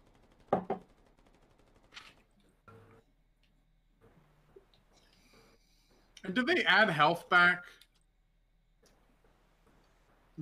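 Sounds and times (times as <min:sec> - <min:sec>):
video game gunfire: 0:00.0 - 0:02.3
speech: 0:06.3 - 0:07.8.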